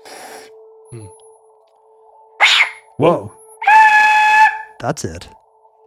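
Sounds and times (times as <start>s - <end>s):
speech: 0.9s - 1.2s, 3.0s - 3.4s, 4.8s - 5.4s
spooky screamy whistle being blown: 3.6s - 4.7s.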